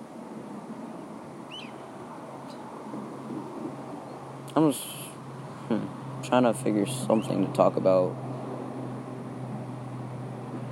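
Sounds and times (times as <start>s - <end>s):
steady rushing wind-like hiss: 0.0s - 10.7s
birds chirping outside: 1.5s - 2.7s, 3.5s - 8.0s
speech: 4.6s - 5.0s, 5.7s - 8.3s.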